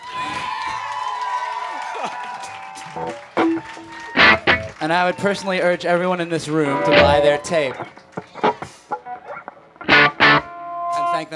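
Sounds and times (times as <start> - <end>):
audience applause: 0.0 - 8.9
speech: 2.9 - 4.1, 4.8 - 8.0.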